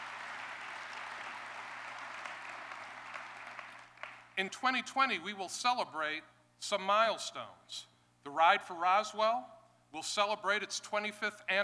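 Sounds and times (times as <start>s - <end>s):
audience applause: 0.0s - 4.3s
speech: 4.4s - 11.6s.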